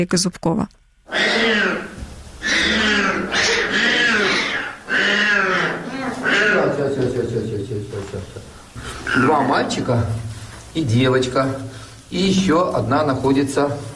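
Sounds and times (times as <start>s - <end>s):
speech: 0.0s - 1.9s, 7.7s - 10.2s, 10.8s - 13.9s
newborn white lion cubs crying: 1.1s - 10.0s.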